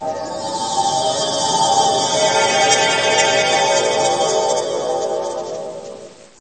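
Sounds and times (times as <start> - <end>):
magic music: 0.0 - 6.3.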